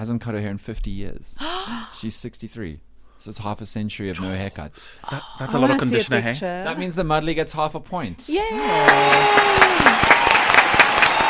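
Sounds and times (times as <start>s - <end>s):
speech: 0.0s - 10.1s
clapping: 8.7s - 11.2s.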